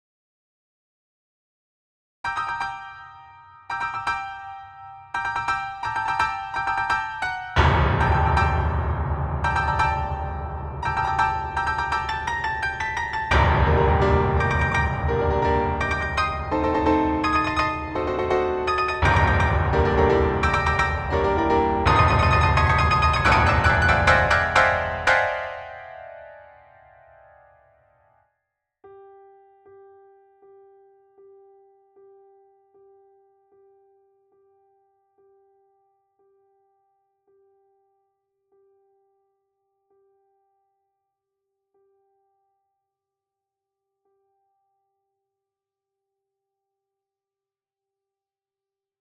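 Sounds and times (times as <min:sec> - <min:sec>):
mini grand piano: 0:02.2 - 0:28.2, 0:28.8 - 0:38.0.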